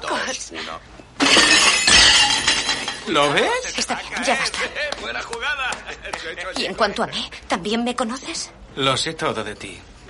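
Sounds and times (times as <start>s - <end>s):
speech: 0.3s - 1.5s, 3.1s - 9.9s
tray of plates dropped and smashing: 1.2s - 3.5s.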